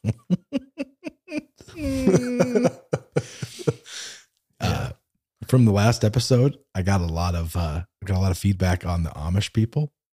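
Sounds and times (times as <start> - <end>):
laughter: 0.0 - 4.0
person grunting and snorting: 1.3 - 4.9
speech: 5.5 - 10.0.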